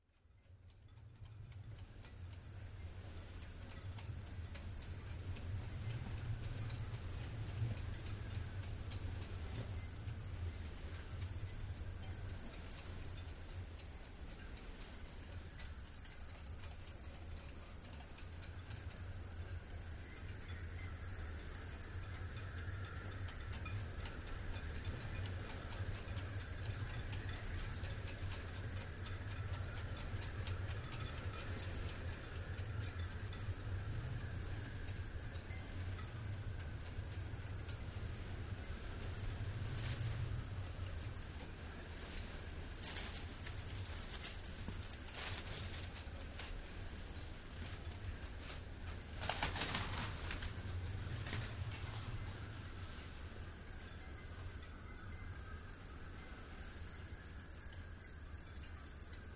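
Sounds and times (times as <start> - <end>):
strong storm wind in rigging: 0.2 - 59.3.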